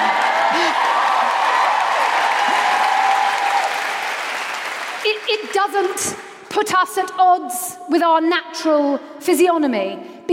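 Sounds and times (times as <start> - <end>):
audience cheering: 0.0 - 5.6
speech: 5.6 - 10.1.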